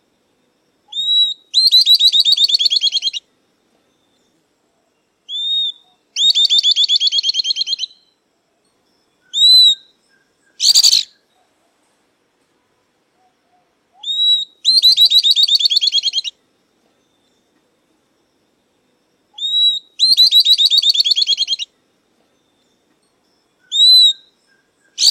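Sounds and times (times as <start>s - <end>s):
southern beardless-tyrannulet song: 0.9s - 3.2s, 5.3s - 8.1s, 9.3s - 11.2s, 14.0s - 16.4s, 19.4s - 21.7s, 23.6s - 25.0s.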